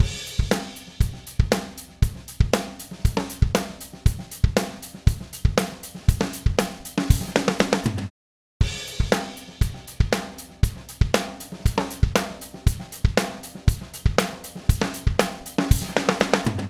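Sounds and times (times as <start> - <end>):
snare drum: 0.0 - 16.6.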